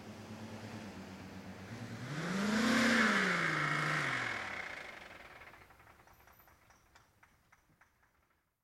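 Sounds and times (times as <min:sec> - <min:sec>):
car engine starting: 0:00.0 - 0:06.9.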